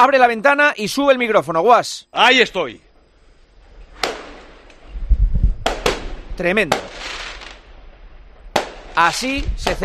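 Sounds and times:
speech: 0.0 - 2.8, 6.4 - 6.9, 9.0 - 9.8
San Juan firecrackers exploding outside in Barcelona: 3.6 - 9.8.

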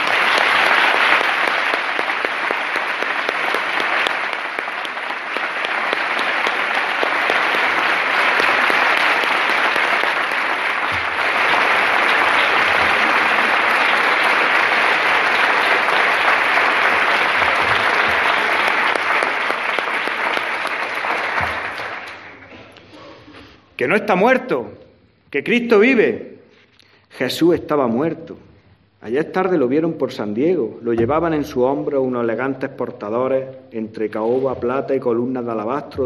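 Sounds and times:
church audience applause: 0.0 - 22.8
speech: 23.8 - 26.3, 27.2 - 36.0.

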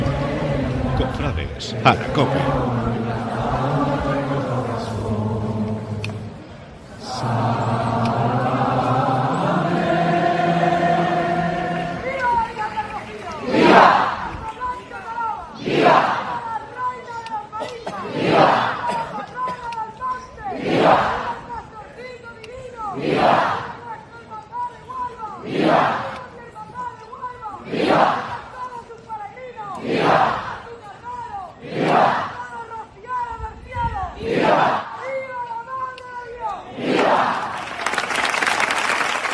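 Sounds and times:
pilgrims of the Hermandad del Rocío de Huelva raising rhythmic cries: 0.0 - 21.7, 29.8 - 32.8, 34.1 - 39.3
murmur of many pilgrims' voices: 0.0 - 39.3
speech: 1.0 - 3.1.

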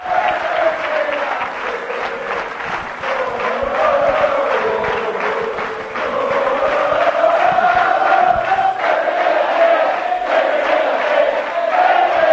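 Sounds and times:
large crowd chanting in unison inside a hall: 0.0 - 12.3.

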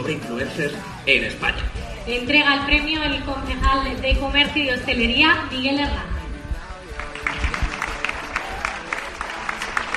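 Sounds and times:
speech: 0.0 - 6.1
audience applause at an influencer awards night: 7.0 - 9.9.

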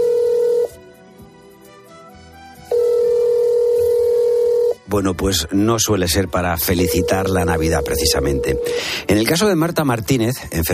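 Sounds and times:
telephone ringing: 0.0 - 0.8, 2.7 - 4.8, 6.8 - 8.8
speech: 4.9 - 10.7.

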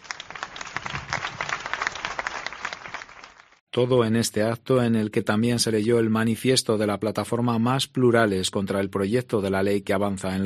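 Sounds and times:
strong audience applause: 0.0 - 3.6
speech: 3.7 - 10.4.

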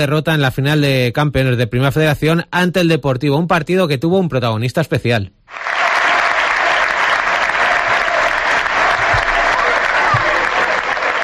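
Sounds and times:
speech: 0.0 - 5.7
Castalia stadium crowd ovation: 5.5 - 11.2.

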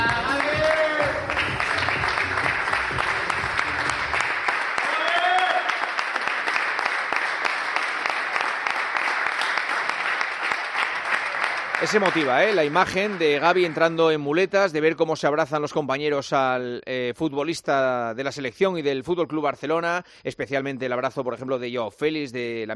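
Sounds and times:
teammates applauding in a gym: 0.0 - 14.4
speech: 11.9 - 22.7.

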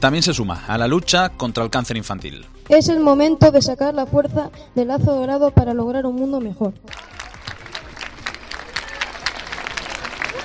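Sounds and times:
speech: 0.0 - 7.1
crowd of young people clapping outdoors: 6.9 - 10.4.

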